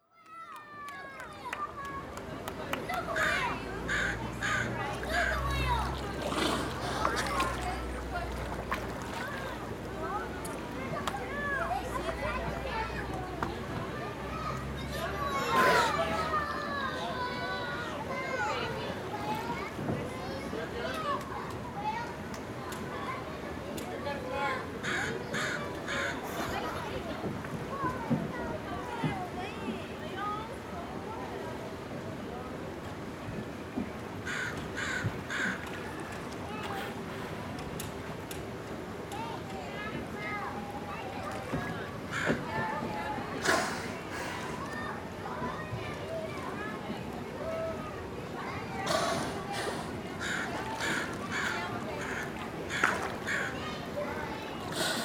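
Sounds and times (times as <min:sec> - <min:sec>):
children at a zoo: 0:00.0 - 0:55.0.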